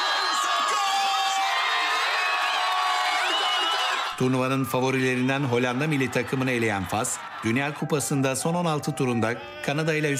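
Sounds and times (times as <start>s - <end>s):
shrill shouts from football fans: 0.0s - 4.2s, 8.8s - 10.1s
football fans cheering Morocco's World Cup win in a packed square: 0.0s - 10.1s
laughter: 3.1s - 4.2s, 4.8s - 10.1s
speech: 4.2s - 10.1s.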